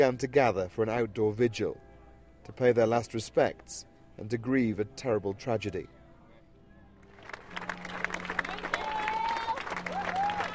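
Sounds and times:
speech: 0.0s - 1.8s, 2.4s - 6.0s
crowd applauding at an outdoor vigil: 7.1s - 10.5s.

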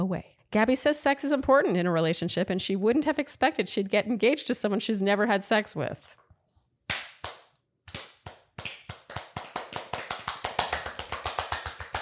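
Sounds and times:
speech: 0.0s - 6.2s
fast hand clapping: 6.9s - 12.0s.

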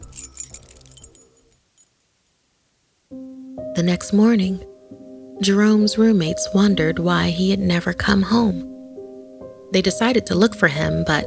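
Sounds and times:
keys jangling while unlocking a door: 0.0s - 2.0s
speech: 3.8s - 4.7s, 5.4s - 8.7s, 9.7s - 11.2s.

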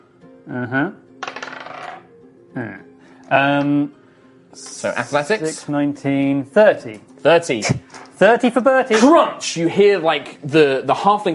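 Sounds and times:
speech: 0.5s - 1.1s, 2.6s - 11.3s
dice being rolled: 1.2s - 2.1s.

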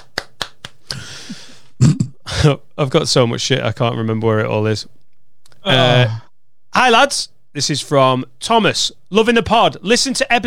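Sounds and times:
hands clapping: 0.0s - 1.0s
speech: 2.4s - 5.0s, 5.6s - 10.4s.

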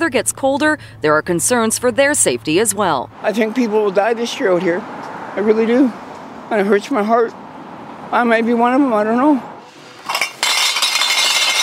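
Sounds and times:
speech: 0.1s - 7.4s, 8.1s - 9.5s
bottles and cans clinking: 9.7s - 11.6s.

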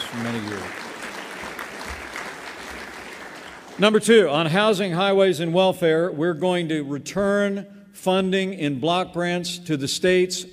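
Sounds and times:
audience applause: 0.0s - 4.0s
speech: 0.1s - 0.8s, 3.8s - 10.5s.

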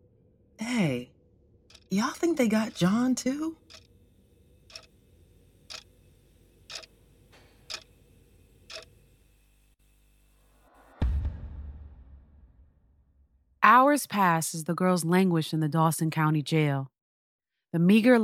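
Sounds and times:
speech: 0.8s - 1.1s, 1.9s - 3.8s, 13.9s - 16.9s, 17.7s - 18.2s
clock ticking: 1.7s - 3.9s, 4.6s - 8.0s, 8.6s - 8.9s.

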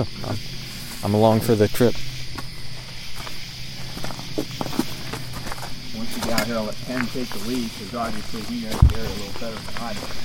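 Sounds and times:
speech: 0.0s - 0.4s, 1.0s - 2.1s, 6.4s - 10.2s
hiss: 0.0s - 10.2s
footsteps of people walking up a road: 2.3s - 10.2s.

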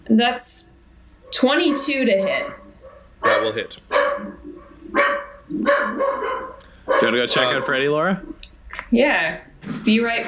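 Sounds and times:
speech: 0.1s - 0.7s, 1.3s - 2.6s, 3.2s - 3.9s, 5.5s - 6.4s, 7.0s - 8.3s, 8.9s - 10.2s
cattle dogs barking from a nearby kennel: 1.2s - 7.9s.

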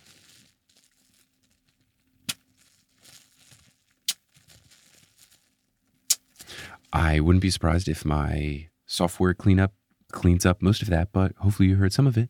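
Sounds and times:
bubble wrap crinkling: 0.0s - 7.0s
speech: 7.0s - 12.2s.

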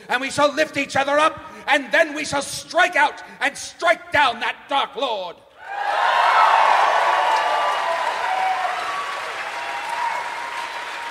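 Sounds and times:
speech: 0.1s - 6.2s
audience applause: 5.9s - 11.0s.

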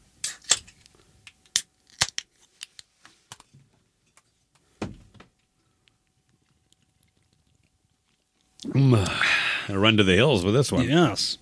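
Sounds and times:
tabs cracking open on one-pint beer cans: 0.2s - 2.8s
speech: 8.7s - 11.4s.

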